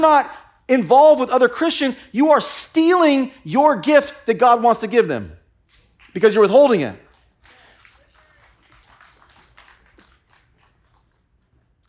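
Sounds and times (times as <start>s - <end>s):
speech: 0.0s - 5.4s, 6.1s - 7.0s
sparse clapping from small audience: 5.7s - 11.8s.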